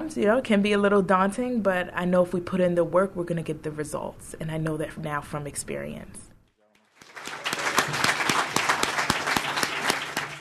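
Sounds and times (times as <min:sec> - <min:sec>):
speech: 0:00.1 - 0:06.3
teachers students and parents applauding: 0:06.8 - 0:10.3.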